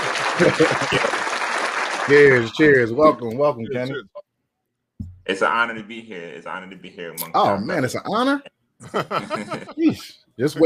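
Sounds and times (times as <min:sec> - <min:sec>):
laughter: 0:00.0 - 0:01.3, 0:08.8 - 0:10.1
applause sound effect from soundboard: 0:00.0 - 0:02.8
speech: 0:00.4 - 0:01.2, 0:02.1 - 0:04.2, 0:05.3 - 0:10.6.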